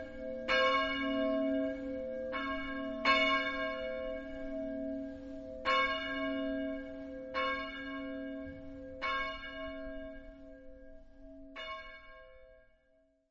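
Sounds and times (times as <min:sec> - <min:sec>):
bells ringing: 0:00.0 - 0:10.4.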